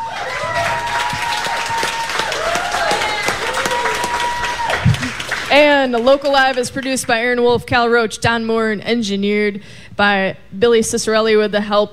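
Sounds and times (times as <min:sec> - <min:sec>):
cheers and whistles: 0:00.0 - 0:05.2
crowd applauding at a live club show: 0:00.0 - 0:07.1
speech: 0:05.6 - 0:11.9.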